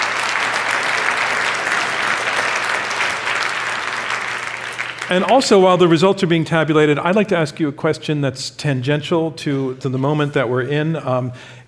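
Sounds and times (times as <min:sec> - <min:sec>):
audience round of applause: 0:00.0 - 0:05.6
speech: 0:05.1 - 0:11.6.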